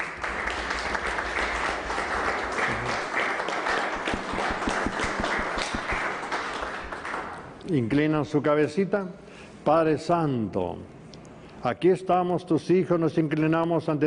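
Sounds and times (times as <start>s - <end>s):
crowd applauding: 0.0s - 7.5s
speech: 7.7s - 11.0s, 11.6s - 14.0s.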